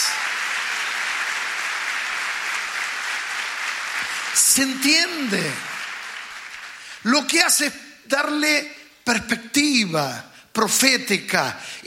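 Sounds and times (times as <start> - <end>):
audience applauding loudly: 0.0 - 7.3
speech: 4.4 - 5.7, 7.0 - 11.8.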